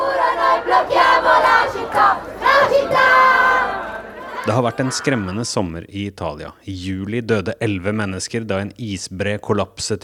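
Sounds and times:
crowd of young protesters chanting in unison: 0:00.0 - 0:05.4
speech: 0:04.5 - 0:10.0.

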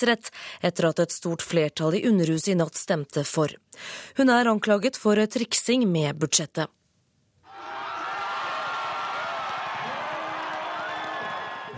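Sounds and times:
speech: 0:00.0 - 0:06.8
large crowd cheering loudly in Brasilia: 0:07.5 - 0:11.7.

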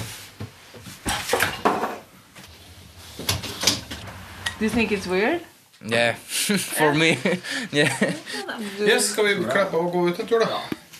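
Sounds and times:
dishwasher door being shut: 0:01.0 - 0:05.2
sliding rattle: 0:02.4 - 0:05.2
speech: 0:04.6 - 0:10.8
laughter: 0:06.5 - 0:08.8.

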